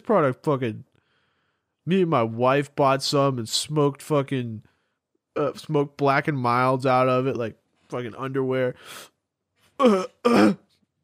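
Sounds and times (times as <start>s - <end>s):
speech: 0.1s - 0.9s, 1.8s - 4.7s, 5.4s - 9.1s, 9.8s - 10.6s
person burping: 9.8s - 10.7s.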